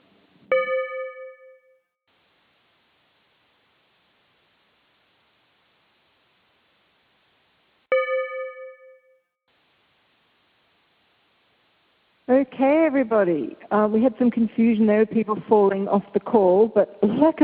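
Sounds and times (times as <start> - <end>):
bell ding: 0.5 - 1.8, 7.9 - 9.2
speech: 12.3 - 17.4.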